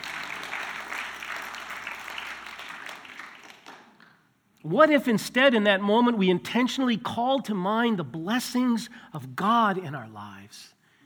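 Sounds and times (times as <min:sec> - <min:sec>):
audience clapping: 0:00.0 - 0:04.4
speech: 0:04.6 - 0:10.8.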